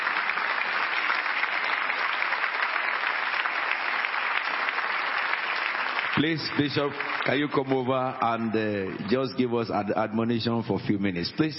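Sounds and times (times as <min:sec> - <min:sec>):
congregation applauding to welcome a bishop at a Thanksgiving Sunday service: 0:00.0 - 0:09.2
speech: 0:06.2 - 0:11.5.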